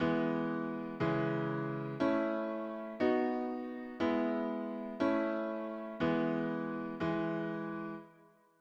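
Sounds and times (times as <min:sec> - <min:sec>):
music: 0:00.0 - 0:08.5.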